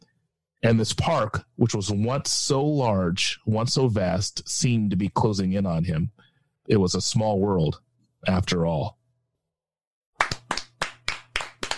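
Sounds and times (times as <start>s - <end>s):
speech: 0.6s - 9.0s
hands clapping: 10.2s - 11.7s.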